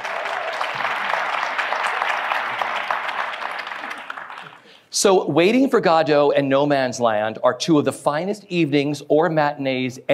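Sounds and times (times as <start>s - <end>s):
audience clapping: 0.0s - 4.9s
speech: 4.9s - 10.1s.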